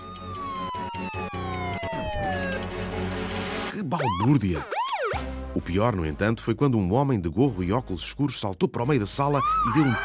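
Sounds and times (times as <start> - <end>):
police car siren wailing: 0.0 - 3.0, 3.9 - 5.4, 9.4 - 10.0
sharp clicks: 0.0 - 3.7
speech: 3.9 - 4.8, 5.5 - 10.0.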